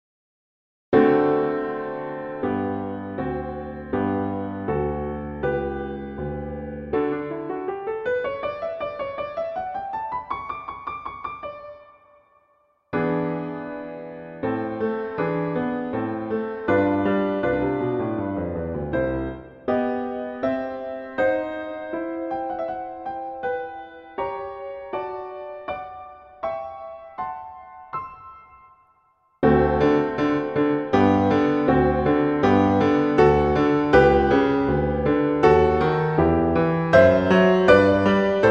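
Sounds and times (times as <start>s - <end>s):
classical prelude in G major: 1.0s - 28.6s, 29.4s - 38.5s.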